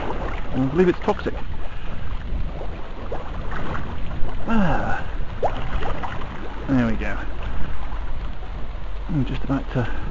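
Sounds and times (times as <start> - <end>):
water noise: 0.0 - 10.0
speech: 0.6 - 1.6, 4.5 - 5.1, 6.7 - 7.4, 9.1 - 10.0
methane gas bubbling up through water: 1.5 - 7.6.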